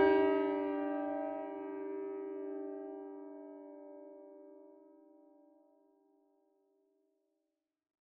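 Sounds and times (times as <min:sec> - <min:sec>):
piano: 0:00.0 - 0:06.2.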